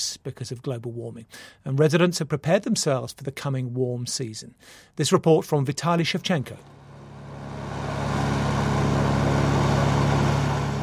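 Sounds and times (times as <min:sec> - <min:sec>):
speech: 0:00.0 - 0:06.8
military helicopter flying low: 0:06.6 - 0:10.8.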